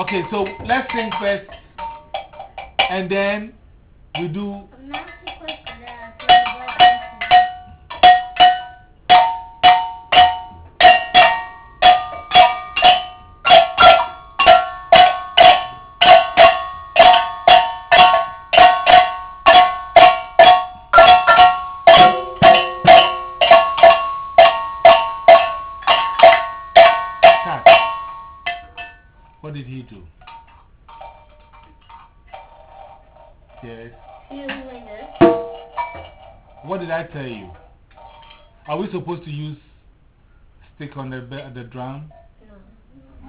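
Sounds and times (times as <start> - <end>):
speech: 0.0 - 1.6, 2.9 - 3.6, 4.2 - 5.2, 41.5 - 42.2
bell being struck: 0.0 - 3.1, 4.2 - 29.4, 30.2 - 39.0.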